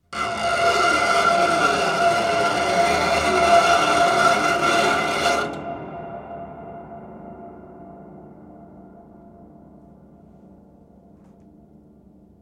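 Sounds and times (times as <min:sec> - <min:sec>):
scrapes: 0:00.1 - 0:05.7.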